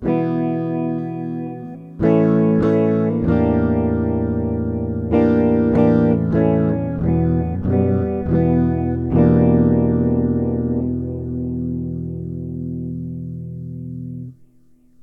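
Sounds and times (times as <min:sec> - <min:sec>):
electric guitar with Purple Phaze pedal effect on iZotope Spire Studio: 0:00.0 - 0:15.0.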